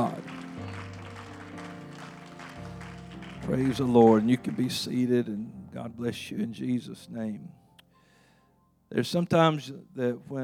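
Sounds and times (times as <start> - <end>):
audience applause: 0.0 - 5.1
speech: 3.4 - 7.6, 8.9 - 10.4.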